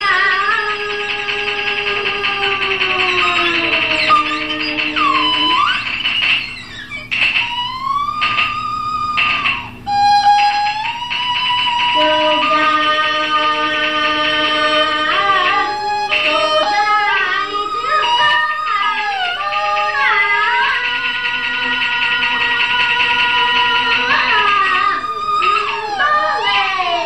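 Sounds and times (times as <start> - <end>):
traditional ringtone: 0.6 - 27.0.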